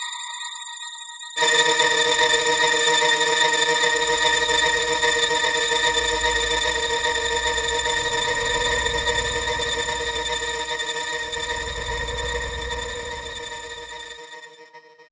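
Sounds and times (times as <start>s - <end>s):
ambient drone in D sharp: 1.4s - 14.7s.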